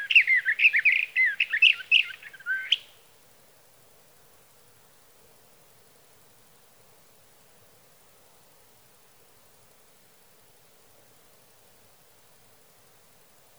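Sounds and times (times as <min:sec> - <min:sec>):
sage thrasher singing a rapid stream of warbling notes: 0:00.0 - 0:02.9.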